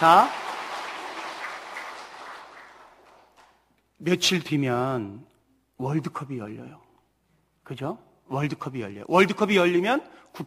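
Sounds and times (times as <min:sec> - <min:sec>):
speech: 0:00.0 - 0:00.4, 0:04.0 - 0:06.8, 0:07.7 - 0:10.4
church congregation applause during a Korean-language sermon: 0:00.0 - 0:03.7.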